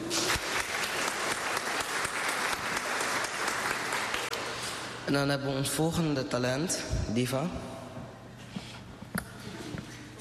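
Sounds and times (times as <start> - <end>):
talent show audience applause: 0.0 - 4.6
speech: 5.1 - 7.8.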